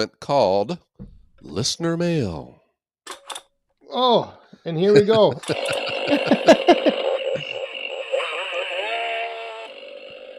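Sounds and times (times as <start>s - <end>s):
speech: 0.0s - 3.3s, 3.9s - 7.0s
laughter: 4.8s - 7.6s
toy Stihl chainsaw electronic sound effect: 5.4s - 10.3s.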